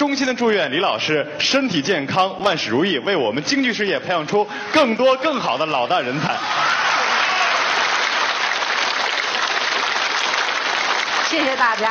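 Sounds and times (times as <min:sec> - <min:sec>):
speech: 0:00.1 - 0:06.8, 0:11.3 - 0:11.8
audience applause: 0:06.3 - 0:11.8.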